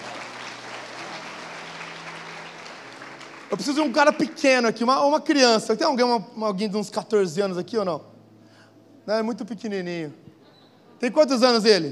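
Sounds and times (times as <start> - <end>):
audience applause: 0.0 - 4.6
speech: 3.5 - 8.1, 9.1 - 10.3, 11.0 - 11.9.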